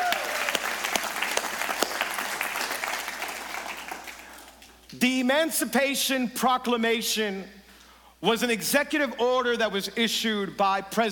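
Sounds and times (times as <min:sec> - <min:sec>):
church congregation clapping in the auditorium: 0:00.0 - 0:04.9
speech: 0:05.0 - 0:07.6, 0:08.2 - 0:11.1.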